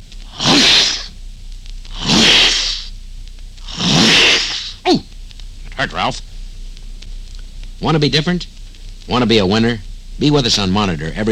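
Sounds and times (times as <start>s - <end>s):
voice imitating whip crack: 0.3s - 1.1s, 1.9s - 2.9s, 3.6s - 5.0s
speech: 5.8s - 6.3s, 7.8s - 8.5s, 9.1s - 11.2s.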